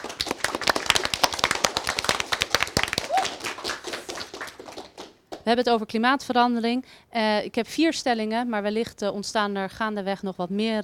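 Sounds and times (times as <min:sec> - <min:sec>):
audience applause: 0:00.0 - 0:05.2
whistle or cheer: 0:03.1 - 0:03.4
speech: 0:05.5 - 0:10.8.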